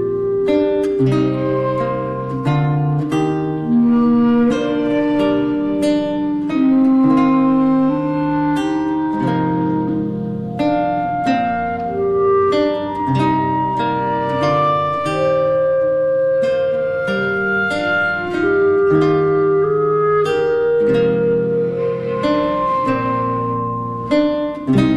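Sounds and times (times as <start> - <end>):
cello: 0.0 - 24.9
clarinet: 0.0 - 24.9
lute: 0.0 - 24.9.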